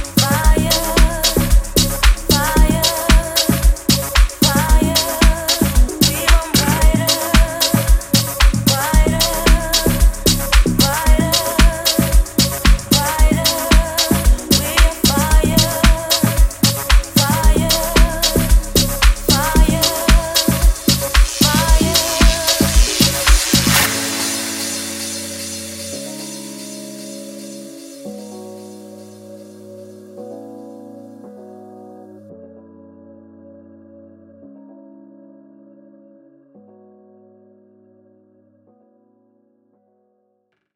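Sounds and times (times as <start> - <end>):
vocal mix music: 0.0 - 30.3.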